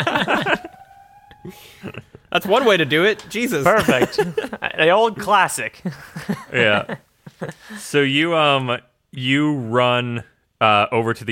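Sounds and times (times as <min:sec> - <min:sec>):
school fire alarm ringing: 0:00.0 - 0:04.7
laughter: 0:00.0 - 0:07.8
speech: 0:01.4 - 0:11.2.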